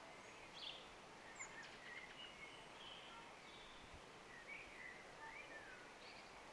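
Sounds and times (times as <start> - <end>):
Eurasian blackbird song: 0.2 - 6.3.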